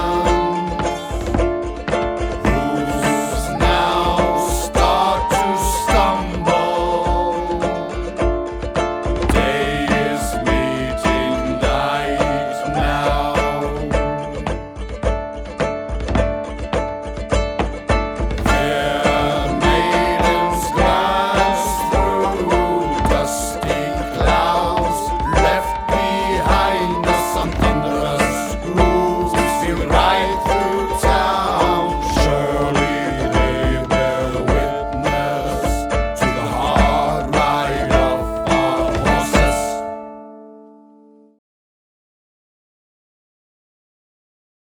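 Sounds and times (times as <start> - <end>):
chorus singing: 0.0 - 8.3, 9.3 - 14.9, 18.4 - 40.1
flute: 0.0 - 15.3, 18.3 - 40.6
drum: 0.0 - 40.0
guitar: 0.0 - 41.3.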